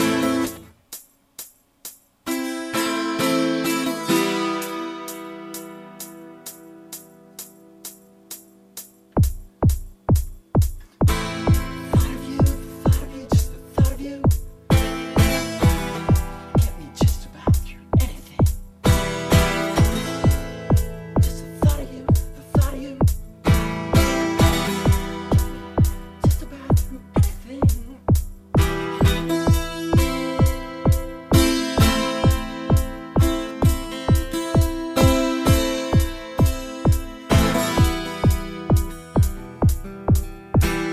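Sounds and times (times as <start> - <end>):
one-man band playing in concert: 0.0 - 40.9
bass playing: 9.2 - 40.9.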